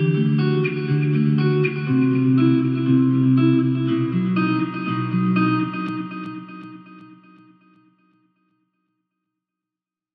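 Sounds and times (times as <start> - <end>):
sad guitar beat: 0.0 - 8.0.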